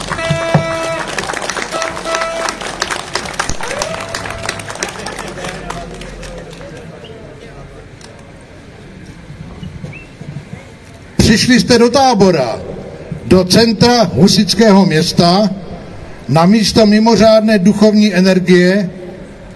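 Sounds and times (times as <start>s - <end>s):
audience applause: 0.0s - 6.9s
speech: 11.3s - 12.7s, 13.3s - 15.6s, 16.3s - 19.0s.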